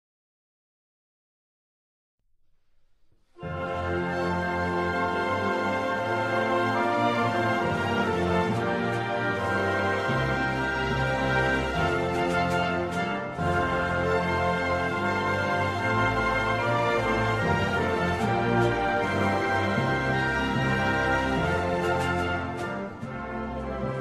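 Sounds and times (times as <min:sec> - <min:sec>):
anthem music: 0:03.3 - 0:23.9.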